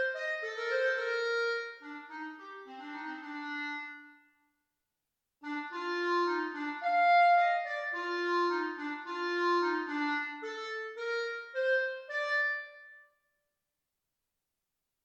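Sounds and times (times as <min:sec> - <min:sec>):
clarinet: 0:00.0 - 0:04.4, 0:05.4 - 0:13.0.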